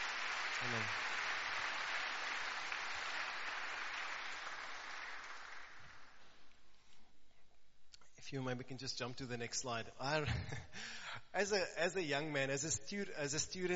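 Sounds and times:
audience applause: 0.0 - 6.4
speech: 0.6 - 1.2, 8.3 - 13.7.

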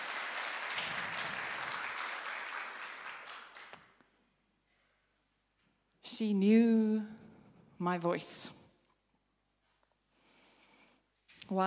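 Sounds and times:
audience clapping: 0.0 - 4.0
speech: 6.2 - 7.2, 7.8 - 8.6, 11.5 - 11.6.

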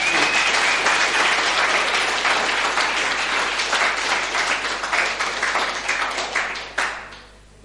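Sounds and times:
audience clapping hands: 0.0 - 7.3.

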